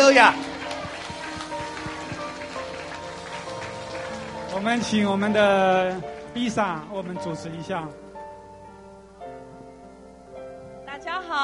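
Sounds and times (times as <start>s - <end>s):
audience applause: 0.0s - 7.7s
speech: 0.1s - 0.5s, 4.5s - 8.0s, 11.0s - 11.4s.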